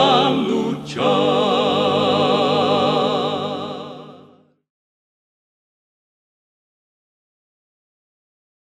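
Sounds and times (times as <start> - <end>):
vocals: 0.0 - 4.5.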